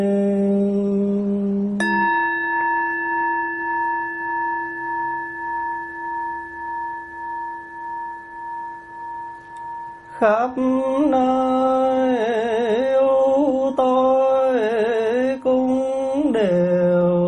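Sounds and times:
steady low tone: 0.2 - 17.2
temple bell being struck: 1.8 - 12.1
speech: 10.2 - 11.7.

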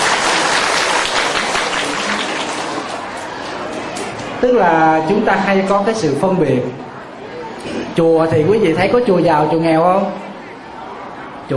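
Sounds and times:
audience applause: 0.0 - 4.4
speech: 4.4 - 6.9, 8.0 - 10.2.

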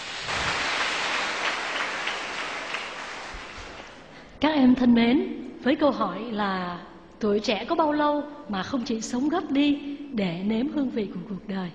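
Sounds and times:
audience applause: 0.0 - 4.2
speech: 4.4 - 11.7.

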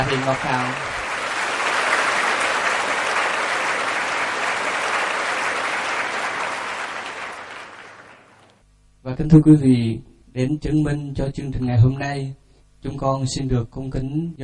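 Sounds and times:
speech: 0.0 - 0.9, 9.0 - 14.4
audience applause: 0.0 - 8.6.

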